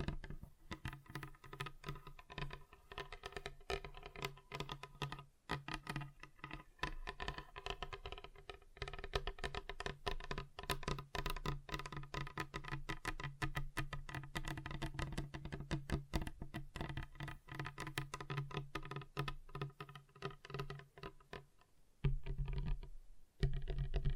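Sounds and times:
fingers tapping rapidly on a table: 0.0s - 24.1s.

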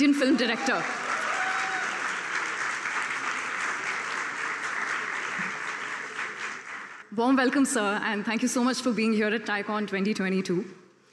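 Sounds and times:
speech: 0.0s - 1.1s, 7.2s - 10.8s
loud audience applause: 0.0s - 7.1s.

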